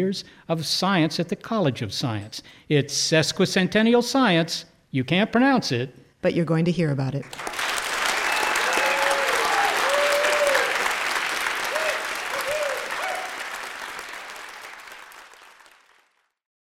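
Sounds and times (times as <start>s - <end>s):
speech: 0.0s - 7.7s
live audience clapping at a science event at the University of Notre Dame: 7.2s - 16.4s.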